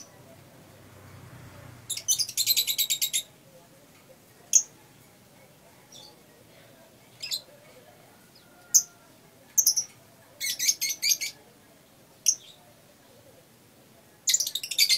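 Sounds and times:
lovebird chirping and trilling: 1.9s - 3.4s, 4.5s - 4.9s, 8.3s - 9.0s, 9.6s - 11.4s, 12.2s - 12.6s, 14.2s - 14.9s.

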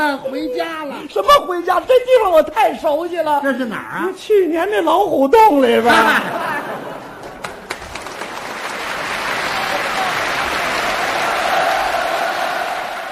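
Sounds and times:
speech: 0.1s - 6.9s
laughter: 5.7s - 8.3s
audience applause after a crosstalk comedy performance: 6.8s - 13.1s.

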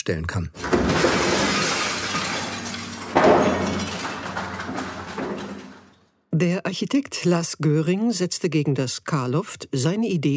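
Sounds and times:
speech: 0.0s - 1.1s, 6.4s - 10.3s
window pane being smashed: 0.6s - 6.1s.

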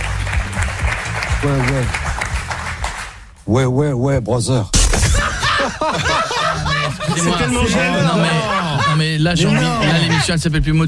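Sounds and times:
studio audience applause welcoming a guest onto a French radio show: 0.0s - 3.3s
speech: 1.4s - 2.1s, 3.5s - 4.9s, 7.0s - 10.8s
laughter: 5.1s - 10.8s.

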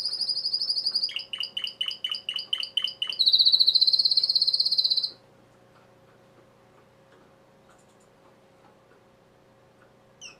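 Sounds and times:
domestic canary singing: 0.0s - 5.2s, 10.2s - 10.3s.

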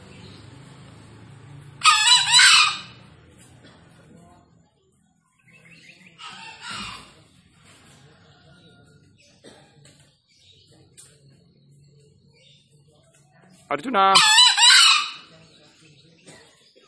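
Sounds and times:
wild junglefowl crowing, answering each other: 1.8s - 3.0s, 6.2s - 7.2s, 14.0s - 15.4s
speech: 13.7s - 14.3s.

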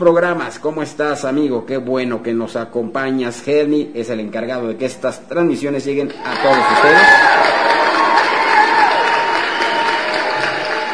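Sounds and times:
speech: 0.0s - 7.8s
studio applause: 6.1s - 10.9s.

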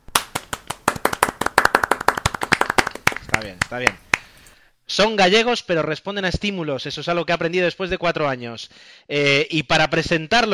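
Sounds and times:
group clapping: 0.0s - 4.4s
speech: 3.4s - 4.1s, 4.9s - 10.5s.

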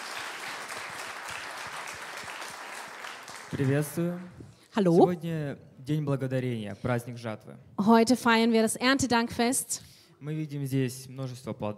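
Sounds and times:
audience applause at a bilingual harvest thanksgiving service: 0.0s - 4.3s
speech: 3.5s - 11.7s.

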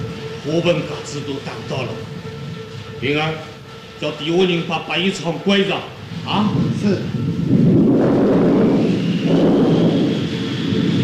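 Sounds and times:
speech: 0.4s - 2.2s, 3.0s - 7.6s
deep rumble of thunder from an approaching rainstorm: 6.0s - 11.0s.

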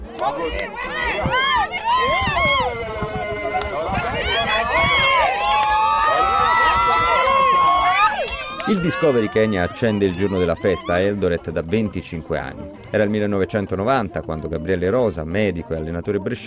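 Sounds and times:
speech: 0.2s - 2.2s, 8.7s - 16.4s
family members cheering at a race finish: 0.2s - 11.2s.

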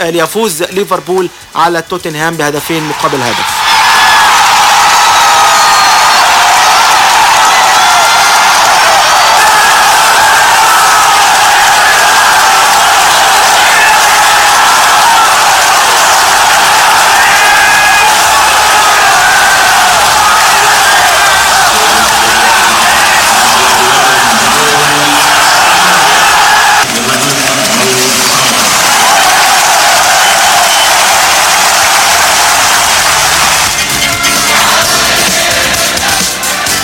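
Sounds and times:
speech: 0.0s - 3.6s
stadium crowd of football fans cheering after a goal: 2.7s - 36.8s
scattered applause: 2.8s - 36.8s.

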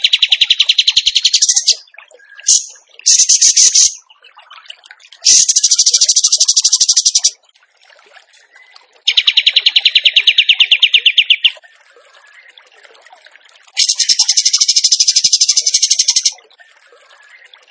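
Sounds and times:
bird trilling: 0.0s - 1.8s, 2.4s - 4.0s, 5.3s - 7.4s, 9.1s - 11.6s, 13.8s - 16.4s.

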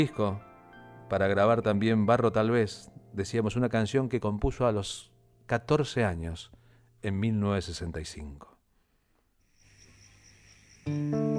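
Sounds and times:
speech: 0.0s - 0.5s, 1.1s - 8.5s, 10.8s - 11.3s
guitar: 0.0s - 4.6s, 10.8s - 11.3s
crickets chirping: 9.4s - 11.3s.

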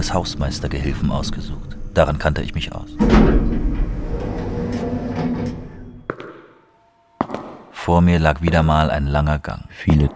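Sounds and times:
speech: 0.0s - 3.5s, 7.9s - 10.1s
elevator with scorched buttons riding to the 12th floor: 0.0s - 6.1s
faint sustained tone: 0.0s - 6.1s
sliding elevator doors knocking: 3.0s - 6.1s.

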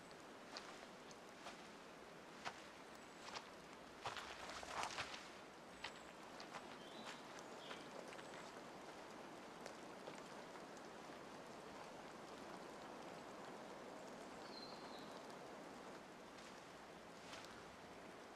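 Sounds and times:
low hiss: 0.0s - 18.3s
footsteps of a girl slowly walking forward: 0.4s - 8.6s, 16.3s - 17.9s.

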